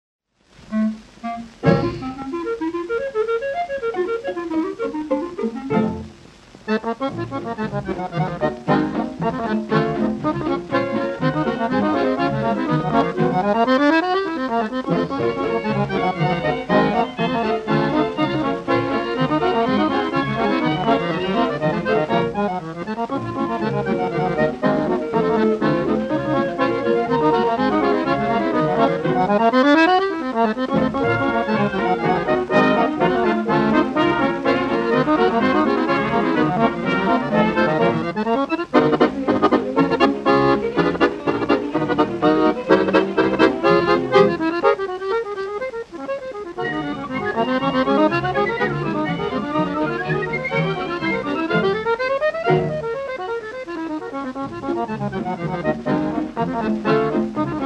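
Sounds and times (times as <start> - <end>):
accordion: 0.6 - 57.6.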